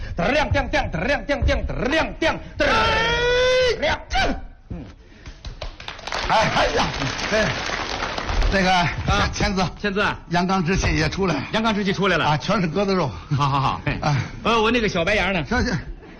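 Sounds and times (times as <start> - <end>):
speech: 0.2 - 4.9, 6.3 - 7.8, 8.5 - 15.9
audience applause: 5.4 - 9.2.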